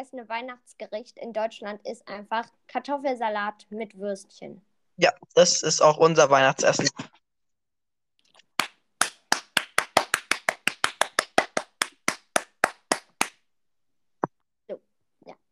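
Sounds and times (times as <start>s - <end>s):
speech: 0.0s - 7.2s
hand clapping applause: 8.4s - 13.4s.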